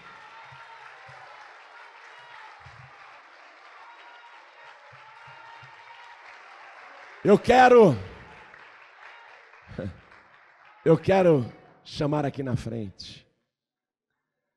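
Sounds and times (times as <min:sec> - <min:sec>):
church audience applauding: 0:00.0 - 0:11.6
speech: 0:07.2 - 0:08.1, 0:09.8 - 0:10.0, 0:10.8 - 0:13.2.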